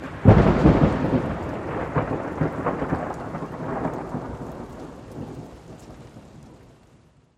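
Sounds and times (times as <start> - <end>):
lightning strike: 0.0 - 4.2.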